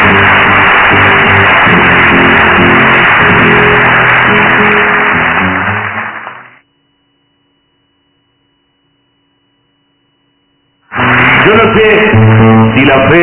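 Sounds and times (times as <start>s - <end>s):
large audience applause: 0.0s - 6.6s, 10.9s - 11.8s
speech: 11.8s - 12.1s, 12.8s - 13.2s.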